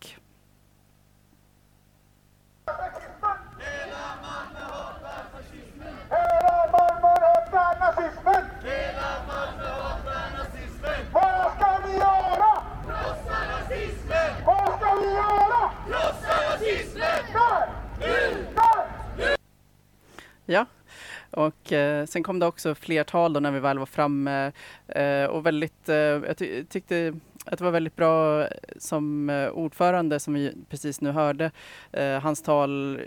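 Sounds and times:
crowd chanting slogans: 0:02.6 - 0:19.4
speech: 0:21.7 - 0:33.0.

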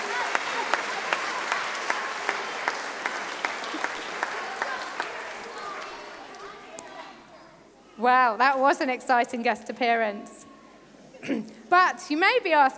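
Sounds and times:
audience clapping: 0:00.0 - 0:07.0
speech: 0:08.0 - 0:10.4, 0:11.2 - 0:12.7.

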